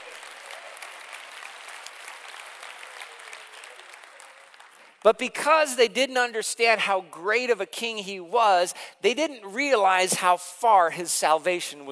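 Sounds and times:
audience clapping: 0.0s - 5.2s
speech: 5.0s - 11.9s.

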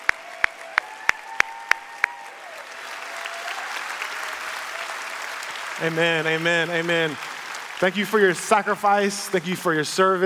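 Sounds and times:
audience applause: 0.0s - 10.2s
speech: 5.8s - 10.2s.

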